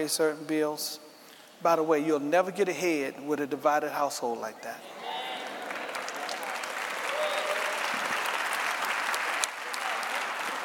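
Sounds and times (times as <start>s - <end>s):
speech: 0.0s - 5.0s
audience clapping: 5.3s - 10.6s.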